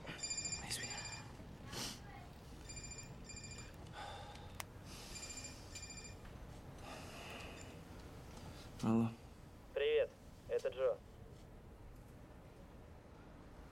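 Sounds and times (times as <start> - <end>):
telephone ringing with high warbling electronic tones: 0.0 - 1.4, 2.6 - 3.8, 5.1 - 6.3
speech: 8.8 - 9.2, 10.8 - 11.1.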